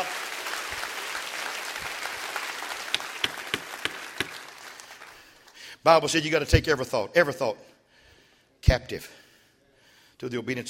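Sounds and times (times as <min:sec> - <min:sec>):
audience clapping hands: 0:00.0 - 0:05.6
speech: 0:05.8 - 0:07.7, 0:08.6 - 0:09.2, 0:10.2 - 0:10.6.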